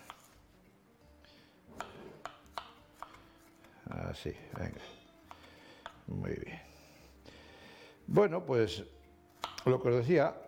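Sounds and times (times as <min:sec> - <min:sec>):
knife chopping a large garlic clove on a board: 0:00.0 - 0:00.3, 0:01.7 - 0:03.7, 0:09.4 - 0:09.7
speech: 0:04.1 - 0:05.0, 0:06.1 - 0:06.7, 0:08.1 - 0:09.0, 0:09.6 - 0:10.4.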